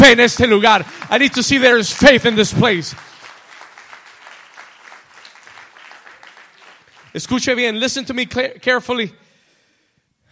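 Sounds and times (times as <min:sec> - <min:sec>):
audience applause: 0:00.0 - 0:07.7
speech: 0:00.1 - 0:03.1, 0:07.1 - 0:09.2.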